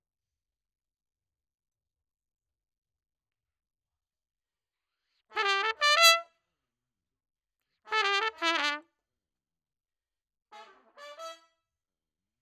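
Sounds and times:
trumpet: 0:05.3 - 0:06.4, 0:07.9 - 0:08.9, 0:10.5 - 0:11.6.

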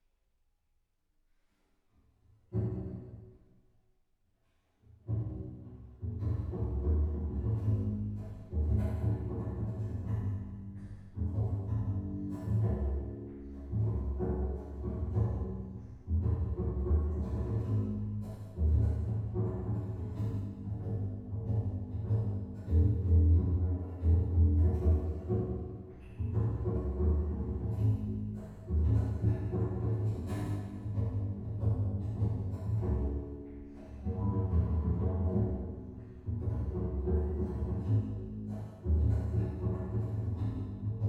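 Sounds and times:
bass: 0:02.4 - 0:03.5, 0:04.9 - 0:41.0.

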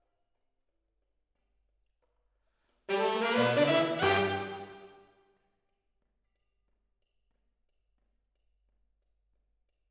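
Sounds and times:
piano recorded with MKH AB microphones: 0:02.9 - 0:05.0.

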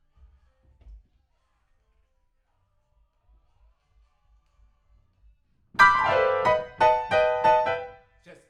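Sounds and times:
rock and roll piano: 0:05.8 - 0:08.0.

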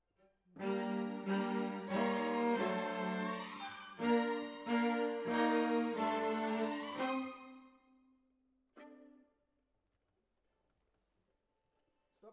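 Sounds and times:
cellos playing: 0:00.6 - 0:07.7.

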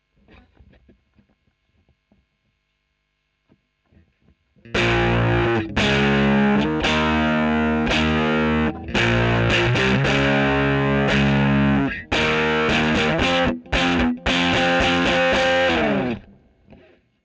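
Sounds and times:
electric guitar recorded with a Royer microphone: 0:04.7 - 0:16.9.

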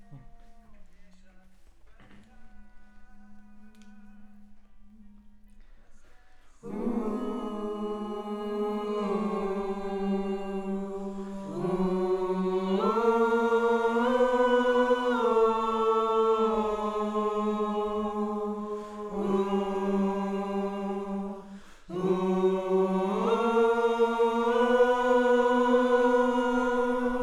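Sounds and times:
choir singing: 0:06.5 - 0:27.2.

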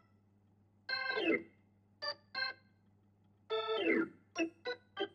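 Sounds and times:
Hammond organ: 0:00.9 - 0:01.5, 0:02.0 - 0:02.6, 0:03.5 - 0:05.1.

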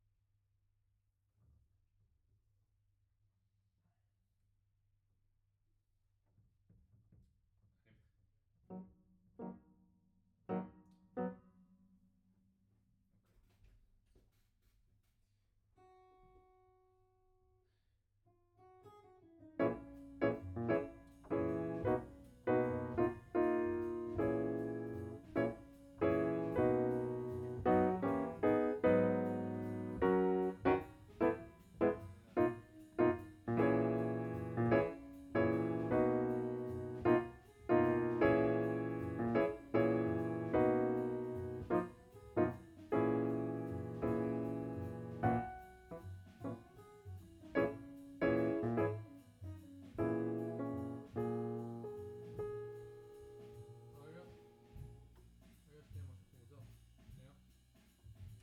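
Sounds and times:
piano note B: 0:19.6 - 0:46.8, 0:47.5 - 0:55.2.

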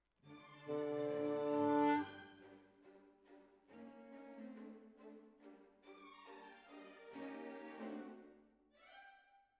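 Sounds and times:
clarinet: 0:00.6 - 0:02.1.

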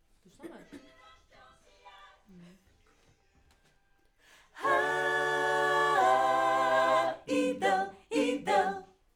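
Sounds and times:
backing vocals on AKG microphone: 0:04.6 - 0:08.8.

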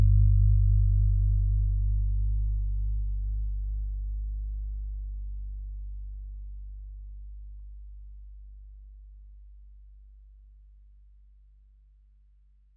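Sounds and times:
bass amp: 0:00.0 - 0:08.3.

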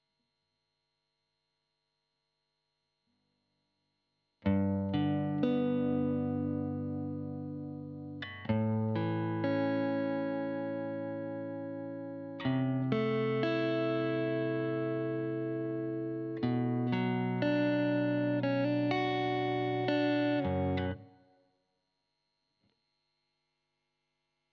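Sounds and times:
guitar recorded with Royer microphone: 0:04.4 - 0:21.4.

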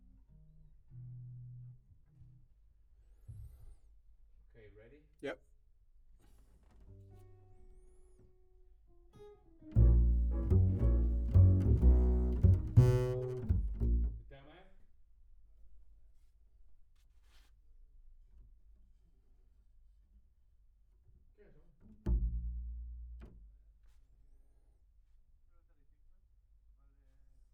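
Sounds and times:
bass: 0:00.0 - 0:03.4, 0:09.6 - 0:14.5, 0:21.4 - 0:24.0.

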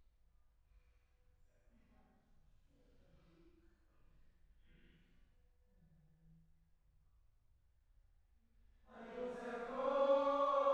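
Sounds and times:
choir singing: 0:08.9 - 0:10.7.

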